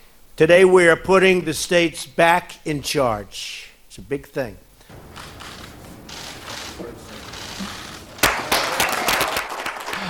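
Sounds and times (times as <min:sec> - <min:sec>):
speech: 0:00.4 - 0:05.3
low murmur: 0:04.9 - 0:08.4
crowd applause: 0:04.9 - 0:10.0.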